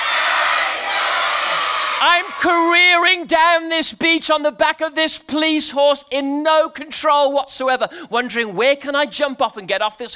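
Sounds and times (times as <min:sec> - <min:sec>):
audience screaming together: 0:00.0 - 0:02.5
speech: 0:02.0 - 0:10.1.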